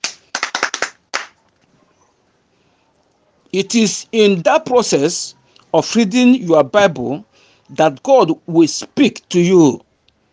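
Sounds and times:
audience clapping: 0.0s - 1.4s
speech: 3.5s - 9.8s.

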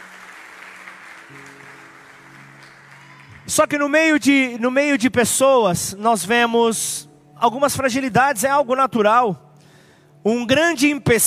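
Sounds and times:
audience applauding: 0.0s - 4.2s
speech: 3.5s - 9.5s, 10.2s - 11.2s.

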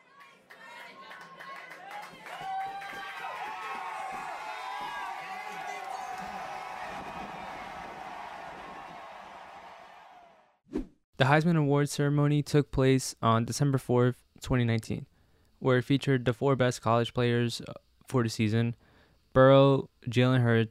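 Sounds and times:
stadium crowd cheering player introduction: 0.0s - 10.6s
speech: 11.2s - 18.8s, 19.4s - 20.6s.

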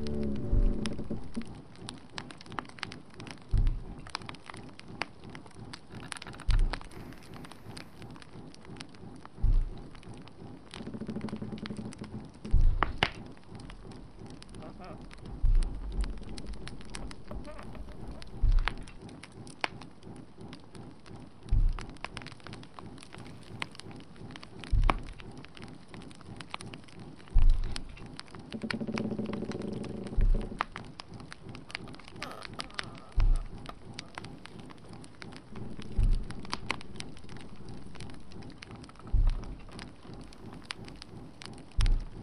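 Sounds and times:
soft low thuds: 0.0s - 1.6s, 3.4s - 4.2s, 8.4s - 19.1s, 20.4s - 25.4s, 27.3s - 28.2s, 30.0s - 31.5s, 32.6s - 42.2s
fireplace crackling and hissing: 0.0s - 42.2s.

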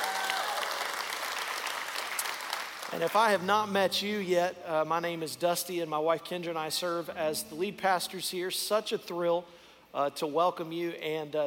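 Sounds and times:
church congregation clapping to welcome online viewers: 0.0s - 3.4s
speech: 2.9s - 11.4s.

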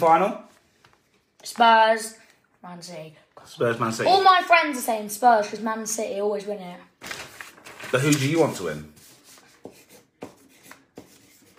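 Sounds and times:
speech: 0.0s - 0.5s, 1.4s - 7.2s, 7.9s - 8.9s
someone writing notes by hand: 9.0s - 11.5s.

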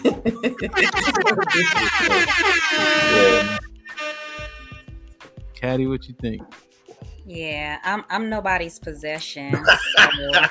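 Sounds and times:
laughter: 0.0s - 3.6s, 9.5s - 10.5s
speech: 0.3s - 3.6s, 5.6s - 10.5s
beep sound effect: 0.7s - 4.8s.

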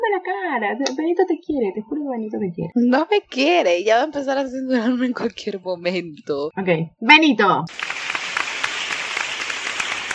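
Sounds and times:
speech: 0.3s - 8.0s
audience applause: 7.7s - 10.1s.

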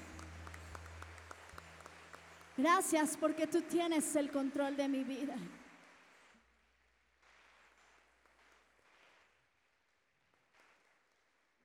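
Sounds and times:
audience applause: 0.0s - 6.3s
speech: 2.6s - 5.6s.

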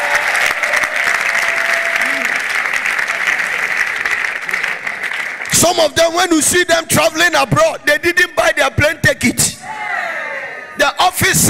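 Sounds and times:
large crowd clapping: 0.0s - 6.5s
speech: 5.7s - 9.6s, 10.8s - 11.4s.

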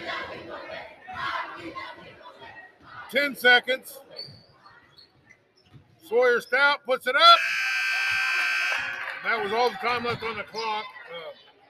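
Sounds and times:
speech: 3.1s - 4.1s, 6.1s - 7.5s, 9.2s - 11.4s
student section crowd cheering wildly: 7.4s - 10.6s.

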